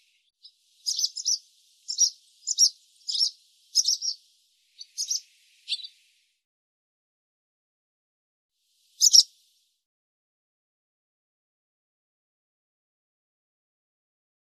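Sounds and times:
barn swallow twittering: 0.0s - 6.0s, 9.0s - 9.4s.

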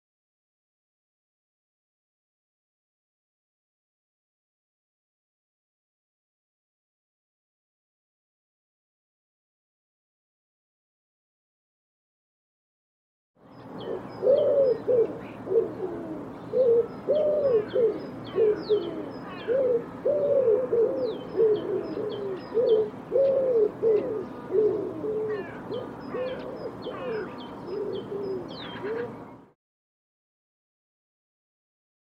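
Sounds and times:
bird cooing: 13.6s - 29.3s.

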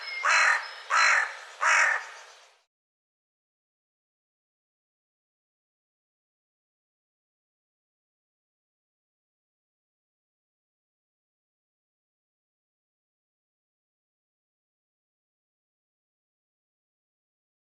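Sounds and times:
bird harsh cawing calls: 0.0s - 2.6s.

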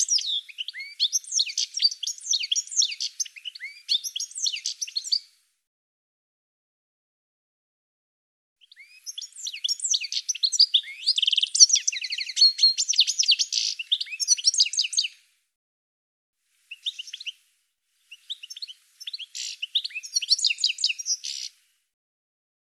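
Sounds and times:
bird twittering: 0.0s - 5.2s, 8.6s - 15.2s, 16.7s - 17.4s, 18.1s - 21.6s.

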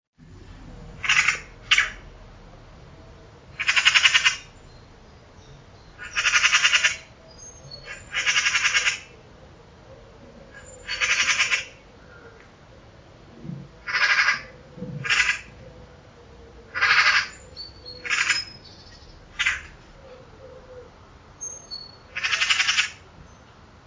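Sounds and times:
harsh raspy pulsed bird calls: 0.9s - 2.2s, 3.5s - 9.3s, 10.5s - 12.5s, 13.8s - 15.7s, 16.7s - 23.1s.

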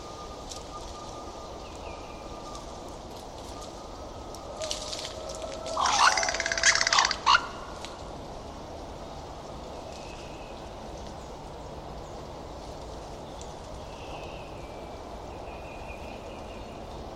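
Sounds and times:
bird giving harsh nasal cawing calls: 4.5s - 7.8s.

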